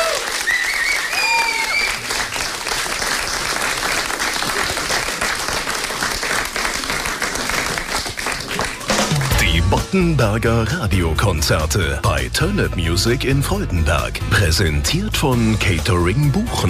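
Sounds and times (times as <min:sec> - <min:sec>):
audience applause: 0:00.0 - 0:09.4
speech: 0:09.9 - 0:16.6.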